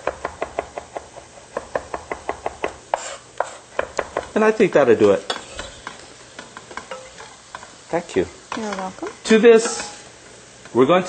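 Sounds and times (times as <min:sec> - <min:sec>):
knife milling garlic on a cutting board: 0:00.0 - 0:04.4
speech: 0:04.4 - 0:05.3, 0:07.9 - 0:09.8, 0:10.7 - 0:11.0.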